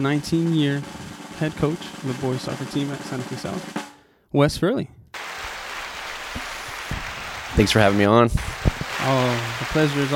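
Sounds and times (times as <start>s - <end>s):
speech: 0.0s - 5.0s, 7.6s - 10.1s
crowd clapping: 5.2s - 10.1s.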